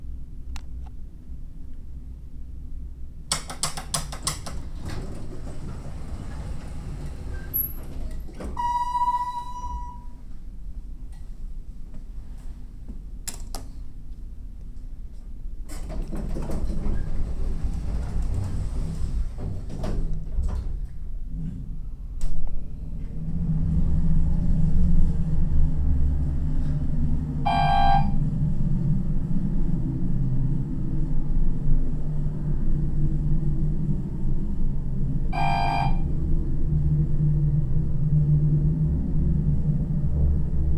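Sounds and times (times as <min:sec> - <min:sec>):
elevator: 0:03.3 - 0:10.3, 0:15.7 - 0:21.7, 0:22.6 - 0:40.7.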